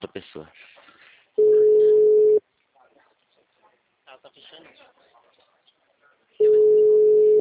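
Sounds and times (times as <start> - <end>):
speech: 0.2 - 0.7
telephone line tone after a dropped call: 1.4 - 2.4, 6.4 - 7.4.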